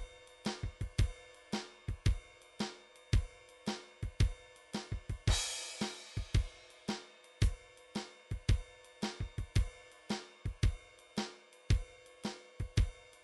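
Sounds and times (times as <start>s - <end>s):
kick drum in a blues beat: 0.0s - 1.2s, 1.9s - 2.3s, 3.2s - 3.4s, 4.0s - 5.4s, 6.2s - 6.6s, 8.3s - 9.8s, 10.5s - 10.8s, 11.7s - 12.0s
swing ride cymbal in a blues beat: 0.0s - 13.2s.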